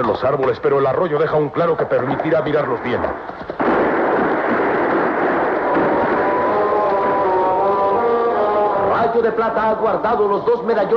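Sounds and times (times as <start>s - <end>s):
speech: 0.0s - 3.7s, 9.1s - 10.9s
gunshot blast in a forest: 3.2s - 7.2s
roar of detonations in a forest: 3.6s - 9.0s.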